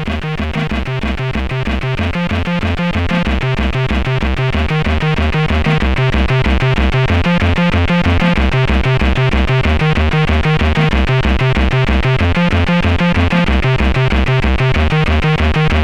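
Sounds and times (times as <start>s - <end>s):
techno music: 0.0s - 15.8s.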